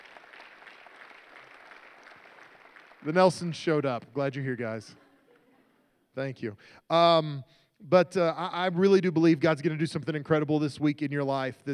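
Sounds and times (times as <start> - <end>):
audience applause: 0.0 - 3.7
speech: 3.0 - 5.0, 6.2 - 11.7.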